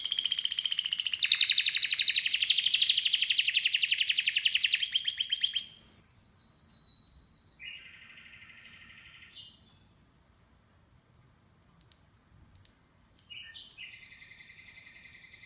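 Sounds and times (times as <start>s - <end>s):
canary song with rapid rolling trills and slurred notes: 0.0s - 9.8s, 12.8s - 15.4s.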